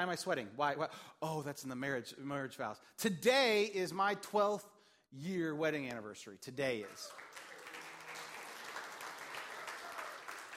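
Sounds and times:
speech: 0.0s - 7.5s
audience clapping: 6.8s - 10.5s.

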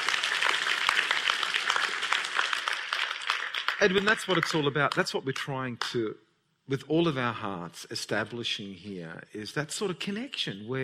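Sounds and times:
audience applause in a church service: 0.0s - 5.0s
speech: 3.8s - 10.8s.

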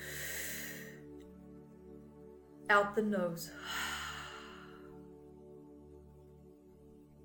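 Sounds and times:
deep breath in through the mouth during a guided breathing exercise: 0.0s - 1.0s, 3.6s - 5.0s
speech: 2.7s - 3.9s.

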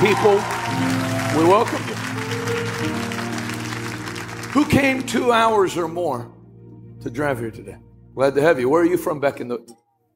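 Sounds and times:
speech: 0.0s - 1.9s, 4.5s - 6.4s, 7.0s - 9.8s
crowd clapping: 0.0s - 5.6s.

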